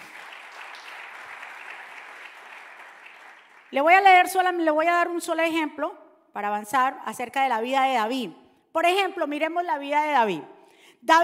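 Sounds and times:
audience applause: 0:00.0 - 0:03.8
speech: 0:03.7 - 0:11.2.

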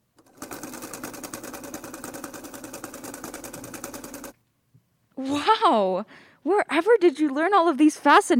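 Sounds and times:
pedal-operated spinning wheel whirring and clattering: 0:00.2 - 0:04.4
speech: 0:05.2 - 0:08.3.

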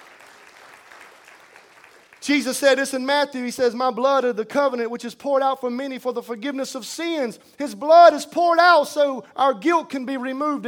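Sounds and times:
audience clapping hands: 0:00.0 - 0:02.6
speech: 0:02.3 - 0:10.6.

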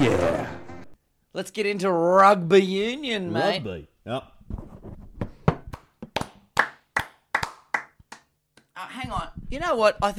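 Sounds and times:
speech: 0:01.4 - 0:04.7, 0:08.8 - 0:10.1
sparse hand clapping: 0:05.7 - 0:08.7.

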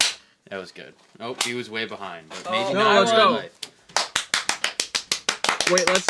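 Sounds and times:
hand claps to sync a recording: 0:00.0 - 0:00.2, 0:03.6 - 0:06.0
speech: 0:00.5 - 0:03.7, 0:05.7 - 0:06.0.

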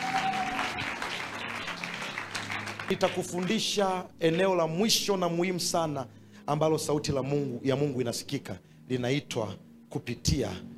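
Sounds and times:
church congregation clapping in praise of Jesus: 0:00.0 - 0:04.5
speech: 0:02.9 - 0:10.7.

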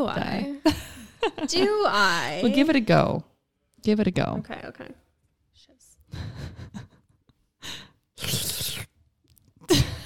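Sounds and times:
speech: 0:00.0 - 0:00.8, 0:01.4 - 0:05.0
person sipping and gulping soda: 0:08.2 - 0:09.7.

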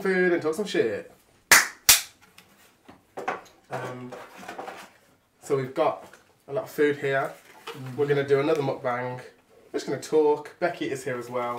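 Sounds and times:
speech: 0:00.0 - 0:01.2, 0:03.7 - 0:04.3, 0:05.5 - 0:11.5
hand clap: 0:01.5 - 0:02.2.

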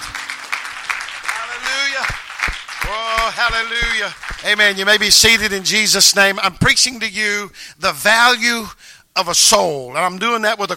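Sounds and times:
audience clapping hands: 0:00.0 - 0:06.3
speech: 0:02.9 - 0:10.7.

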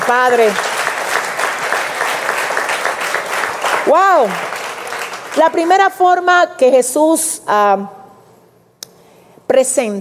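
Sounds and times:
audience applause: 0:00.0 - 0:05.5
speech: 0:00.1 - 0:00.7, 0:03.9 - 0:04.6, 0:05.3 - 0:08.0, 0:09.6 - 0:10.0.

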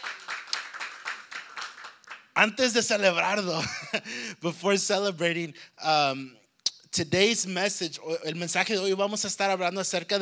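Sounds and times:
audience applause: 0:00.0 - 0:02.3
speech: 0:02.4 - 0:06.4, 0:07.0 - 0:10.2.

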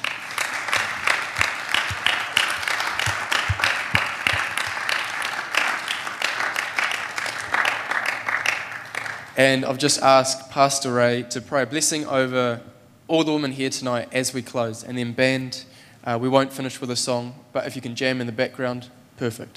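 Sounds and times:
audience applause: 0:00.0 - 0:09.4
speech: 0:09.4 - 0:19.5.

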